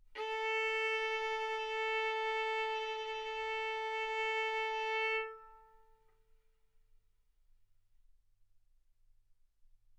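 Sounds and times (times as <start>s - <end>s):
violin arco on A string: 0.0s - 6.0s.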